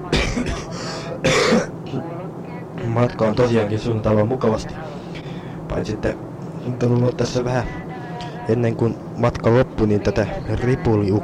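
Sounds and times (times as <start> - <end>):
cough: 0.1 - 1.7
speech: 1.2 - 1.5, 3.0 - 5.0, 5.8 - 7.8, 8.5 - 11.2.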